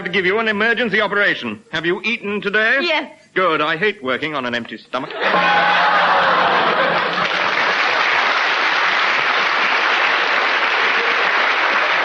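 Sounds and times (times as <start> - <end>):
speech: 0.1 - 5.9
studio audience laughter: 5.1 - 8.2, 9.0 - 12.0
studio audience applause: 5.2 - 12.0.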